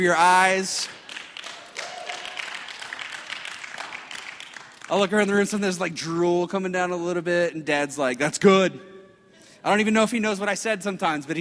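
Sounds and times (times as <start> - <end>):
speech: 0.0 - 1.0, 4.9 - 8.9, 9.6 - 11.3
audience hand clapping: 0.8 - 5.5.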